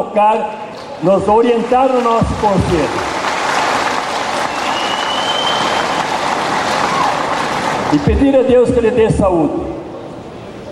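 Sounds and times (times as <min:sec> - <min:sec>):
speech: 0:00.0 - 0:03.2, 0:07.9 - 0:09.7
crowd applauding: 0:00.7 - 0:08.4.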